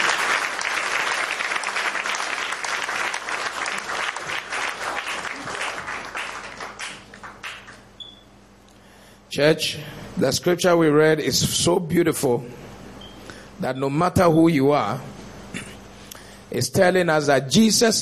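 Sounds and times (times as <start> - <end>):
audience applause: 0.0 - 7.8
speech: 9.4 - 12.6, 13.6 - 15.2, 16.5 - 18.0.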